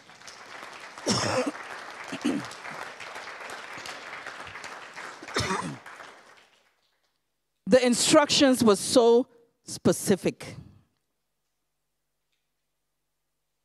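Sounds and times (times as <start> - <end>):
audience applauding: 0.0 - 7.2
speech: 1.0 - 1.6, 7.8 - 10.6.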